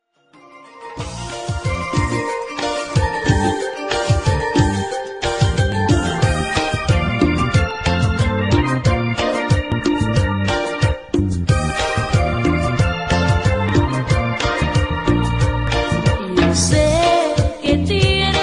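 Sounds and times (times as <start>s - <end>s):
electro music: 0.9s - 17.6s.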